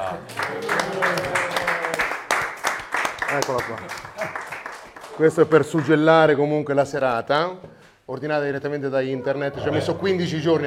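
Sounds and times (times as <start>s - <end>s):
crowd applause: 0.0s - 6.0s
speech: 3.3s - 4.4s, 5.2s - 10.6s.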